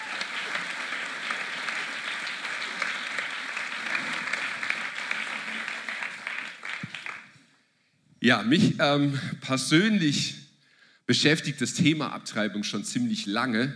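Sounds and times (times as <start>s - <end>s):
crowd applause: 0.0s - 7.4s
speech: 8.2s - 10.4s, 11.1s - 13.7s.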